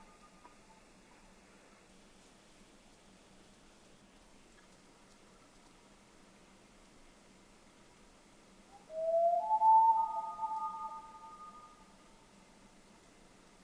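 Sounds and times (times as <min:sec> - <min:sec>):
Common Loon Gavia immer: 0:08.8 - 0:11.9.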